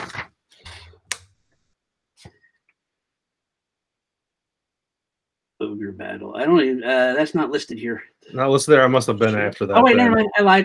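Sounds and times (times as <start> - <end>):
pages of an old fragile 1996 Funcoland newspaper rustling: 0.0 - 1.0
paper snap: 0.0 - 1.3
speech: 5.6 - 10.6.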